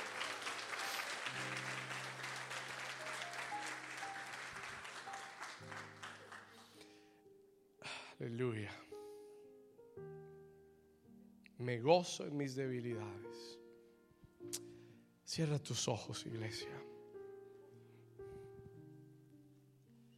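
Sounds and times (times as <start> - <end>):
loud applause: 0.0 - 6.7
speech: 8.2 - 8.9, 11.6 - 13.6, 15.4 - 16.9.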